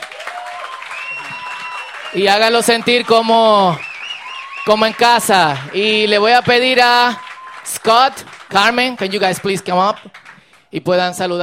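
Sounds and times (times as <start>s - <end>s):
whistles and cheers: 0.0s - 8.4s
audience applause: 0.0s - 10.7s
speech: 2.1s - 3.9s, 4.7s - 11.4s.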